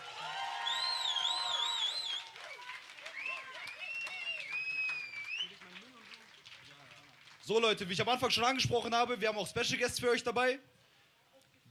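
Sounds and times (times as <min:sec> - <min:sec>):
audience applause: 0:00.0 - 0:07.6
speech: 0:07.5 - 0:10.7.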